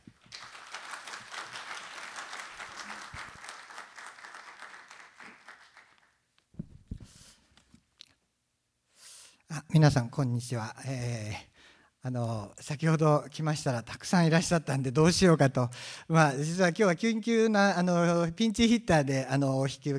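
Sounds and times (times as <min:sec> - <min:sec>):
audience applause welcoming a speaker: 0:00.0 - 0:06.1
speech: 0:09.6 - 0:19.9.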